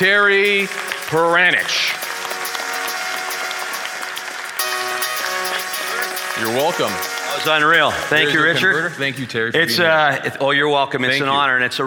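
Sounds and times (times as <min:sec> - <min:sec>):
speech: 0:00.0 - 0:02.0, 0:06.4 - 0:11.8
audience in Edmonton applauding to welcome a speaker: 0:00.0 - 0:09.4.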